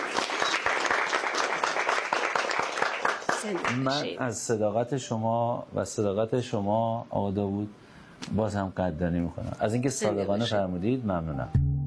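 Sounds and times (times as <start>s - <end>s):
audience applause: 0.0s - 4.1s
speech: 3.4s - 11.7s.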